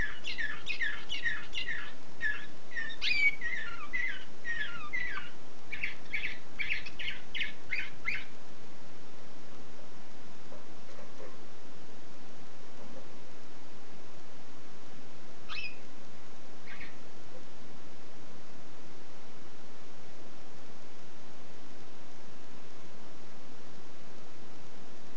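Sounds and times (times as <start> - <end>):
canary singing: 0.0 - 8.4, 15.4 - 15.9, 16.6 - 17.1
faint hiss: 0.0 - 25.1.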